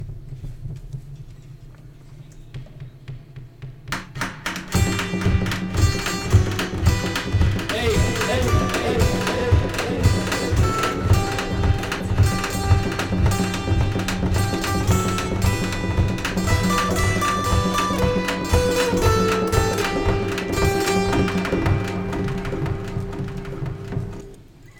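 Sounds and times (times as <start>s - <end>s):
jungle beat: 2.6s - 24.4s.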